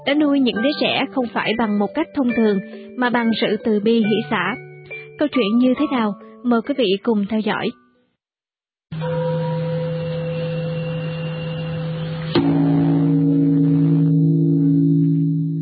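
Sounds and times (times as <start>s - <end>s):
speech: 0.0s - 4.6s, 5.2s - 7.8s
deep Buddhist temple bell struck and ringing: 8.9s - 15.5s.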